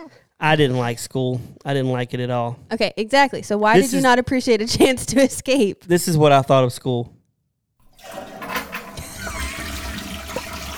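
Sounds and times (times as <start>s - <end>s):
speech: 0.0s - 7.2s
toilet flush sound effect: 7.8s - 10.7s.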